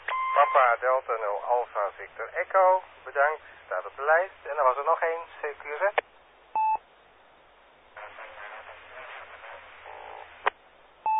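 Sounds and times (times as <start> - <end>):
short loud electronic beep tones: 0.1 - 0.6
speech: 0.4 - 6.1
unmodulated radio carrier hiss: 0.4 - 6.2, 7.9 - 10.7.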